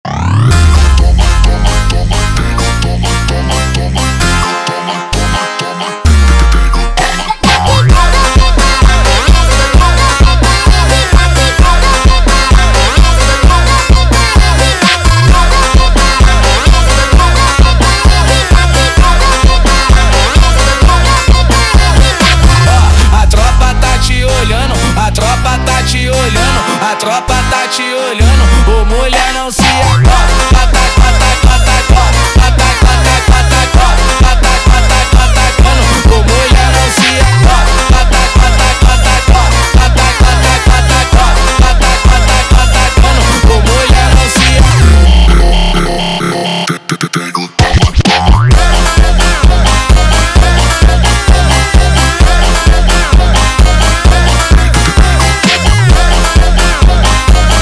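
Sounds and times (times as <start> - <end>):
funk music: 0.0 - 46.9, 47.6 - 57.6.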